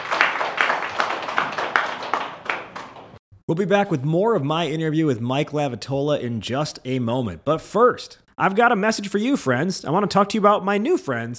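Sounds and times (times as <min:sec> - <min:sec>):
applause: 0:00.0 - 0:03.2
speech: 0:03.5 - 0:11.3.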